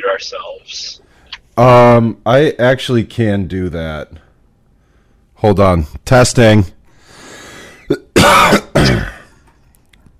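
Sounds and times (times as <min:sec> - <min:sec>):
speech: 0:00.2 - 0:01.0, 0:01.6 - 0:04.2, 0:05.4 - 0:06.8
person coughing: 0:07.8 - 0:09.4
throat clearing: 0:07.8 - 0:09.4.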